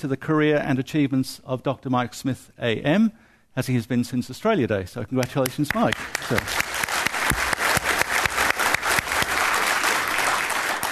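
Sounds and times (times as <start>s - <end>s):
speech: 0.0s - 6.8s
audience applause: 5.7s - 10.9s.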